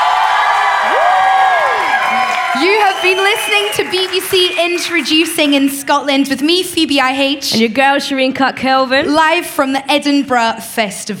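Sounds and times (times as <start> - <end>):
festival crowd cheering: 0.0 - 5.9
speech: 2.6 - 11.1.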